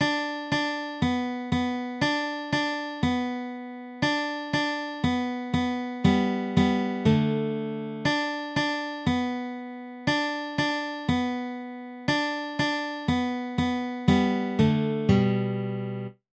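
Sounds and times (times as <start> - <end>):
guitar: 0.0 - 16.2.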